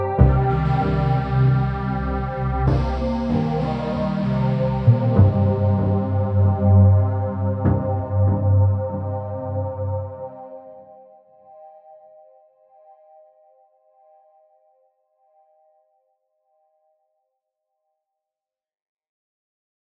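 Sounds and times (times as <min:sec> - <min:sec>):
dub techno music: 0:00.2 - 0:10.0.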